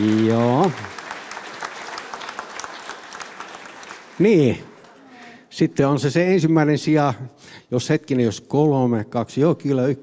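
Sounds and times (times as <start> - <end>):
speech: 0.0 - 0.9, 4.2 - 4.7, 5.6 - 10.0
applause at a Finnish medal ceremony: 0.0 - 5.5.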